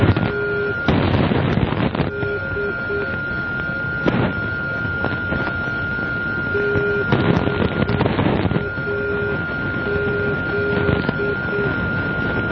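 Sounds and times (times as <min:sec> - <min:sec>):
NDB radio beacon signal: 0:00.0 - 0:12.4.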